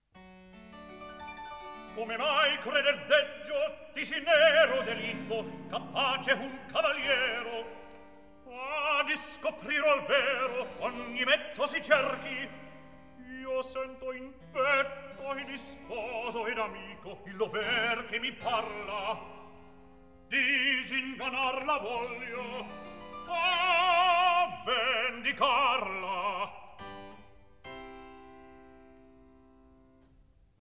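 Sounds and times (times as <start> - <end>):
recitative singing: 1.9 - 19.6, 20.3 - 26.8.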